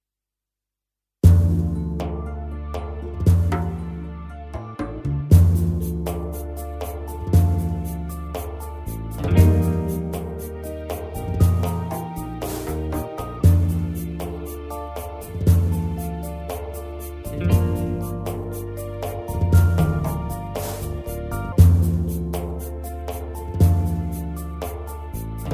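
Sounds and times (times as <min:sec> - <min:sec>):
Turkish folk-style single rhythm: 0:01.2 - 0:25.5.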